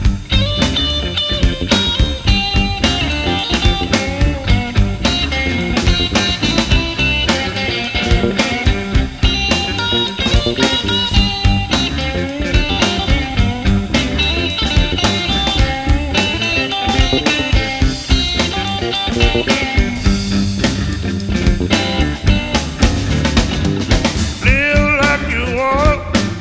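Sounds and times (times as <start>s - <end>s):
blues music: 0.0s - 26.3s.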